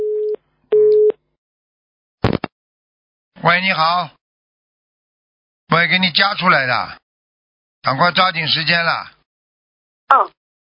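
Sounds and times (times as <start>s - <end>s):
phone busy tone after dropped call: 0.0s - 1.1s
speech: 3.4s - 4.2s, 5.7s - 7.0s, 7.8s - 9.2s, 10.1s - 10.4s.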